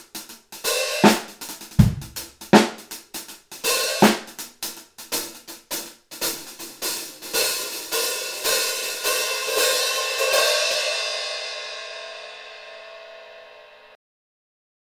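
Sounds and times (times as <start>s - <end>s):
old school hi-hat hit: 0.0s - 10.7s.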